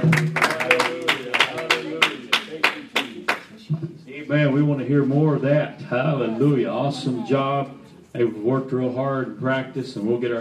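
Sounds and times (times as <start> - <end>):
audience hand clapping: 0.0 - 3.7
speech: 4.3 - 10.4.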